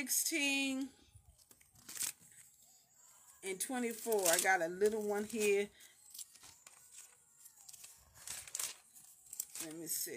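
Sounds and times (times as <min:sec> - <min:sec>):
speech: 0:00.0 - 0:01.0, 0:03.4 - 0:05.9, 0:09.6 - 0:10.1
thin Bible pages being flipped: 0:01.3 - 0:02.6, 0:03.9 - 0:10.1.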